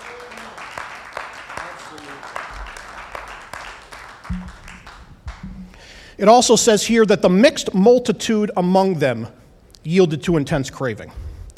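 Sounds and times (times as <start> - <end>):
audience clapping: 0.0 - 6.1
speech: 6.2 - 11.2.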